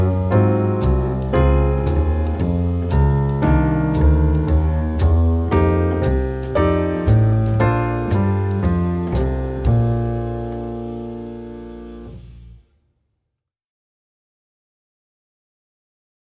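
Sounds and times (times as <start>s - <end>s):
jazz piece: 0.0s - 12.6s.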